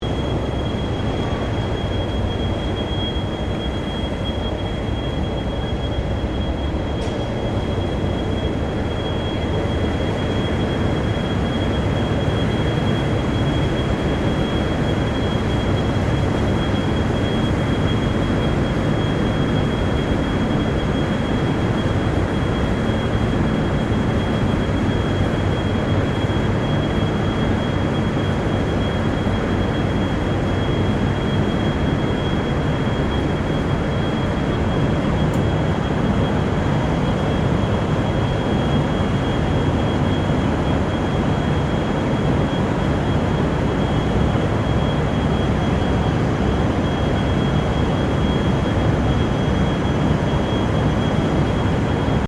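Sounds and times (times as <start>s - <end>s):
distant diesel freight train at railway station: 0.0s - 52.2s.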